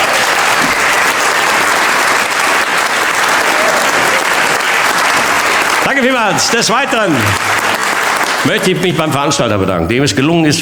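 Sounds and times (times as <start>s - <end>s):
audience applause: 0.0s - 9.4s
speech: 5.9s - 7.6s, 8.4s - 10.6s.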